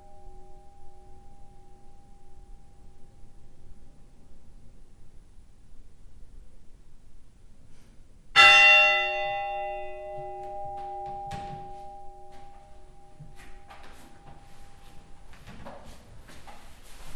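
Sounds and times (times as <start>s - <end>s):
Thingeyrakirkja funeral church bells ringing: 0.0s - 3.9s, 8.4s - 15.4s.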